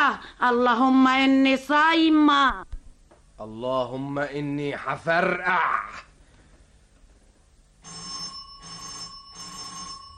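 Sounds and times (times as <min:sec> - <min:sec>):
speech: 0:00.1 - 0:02.7, 0:03.4 - 0:06.1
electric doorbell ringing: 0:07.8 - 0:10.1.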